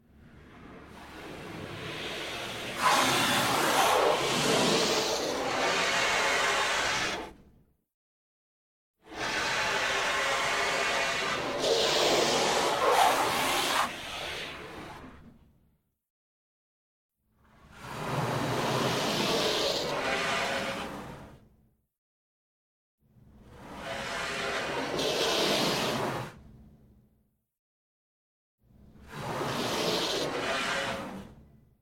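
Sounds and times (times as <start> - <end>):
soft water spray inside a car: 0.9 - 7.3, 9.1 - 15.0, 17.8 - 21.0, 23.7 - 26.1, 29.1 - 31.1.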